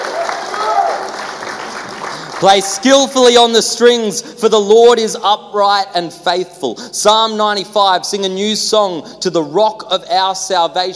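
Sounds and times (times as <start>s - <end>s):
church audience applause: 0.0s - 2.7s
speech: 2.4s - 10.9s.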